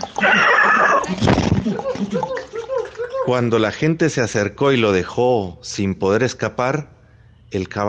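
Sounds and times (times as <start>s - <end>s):
horse with a patch on its belly whinnying: 0.2s - 1.2s
laughter: 0.2s - 3.4s
man narrating: 3.3s - 6.9s, 7.5s - 7.8s
speech: 3.3s - 7.8s.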